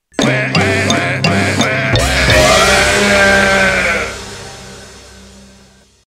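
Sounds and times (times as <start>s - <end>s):
quack meme sound: 0.2s - 4.1s.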